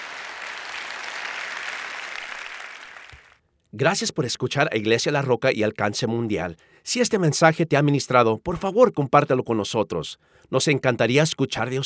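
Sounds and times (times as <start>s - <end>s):
applause: 0.0s - 3.4s
speech: 3.7s - 11.8s.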